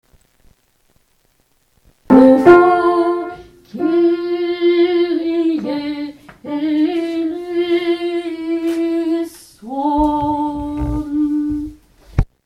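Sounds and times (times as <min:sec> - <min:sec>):
alto voice singing: 0:02.1 - 0:11.8.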